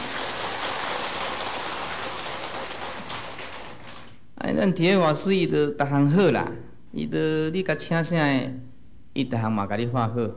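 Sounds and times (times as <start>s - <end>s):
audience applause: 0.0s - 4.2s
speech: 4.5s - 10.3s.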